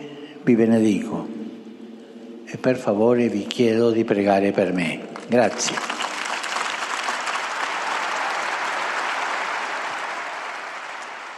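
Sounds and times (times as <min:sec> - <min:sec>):
speech: 0:00.4 - 0:01.4, 0:02.6 - 0:05.9
loud applause from large crowd in Saint Peter's Square: 0:05.2 - 0:11.3.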